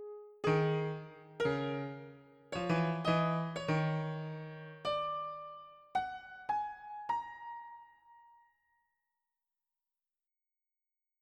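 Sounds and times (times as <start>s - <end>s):
Yamaha Disklavier Pro piano playing: 0.0s - 8.3s.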